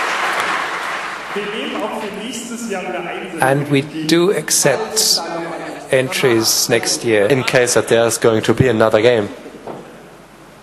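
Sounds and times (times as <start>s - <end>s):
audience applause at a contest: 0.0s - 2.4s
speech: 1.3s - 9.5s.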